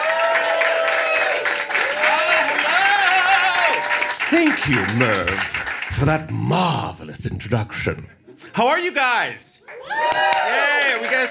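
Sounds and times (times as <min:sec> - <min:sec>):
audience whooping: 0:00.0 - 0:05.6, 0:09.7 - 0:11.2
audience applause for a host at a live show: 0:00.0 - 0:06.8, 0:09.6 - 0:11.2
speech: 0:04.4 - 0:11.2.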